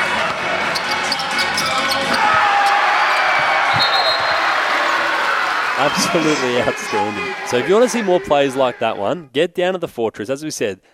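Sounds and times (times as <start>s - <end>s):
shoe squeaks: 0.6s - 2.2s
basketball arena crowd cheering a slam dunk: 2.0s - 9.1s
speech: 5.8s - 10.9s.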